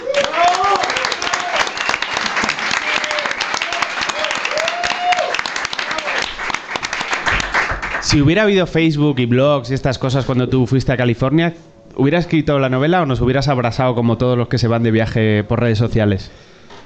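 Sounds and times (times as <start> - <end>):
cheering voices: 0.0 - 8.0
audience applause: 0.0 - 8.2
whistles: 1.6 - 2.5
speech: 8.1 - 16.5.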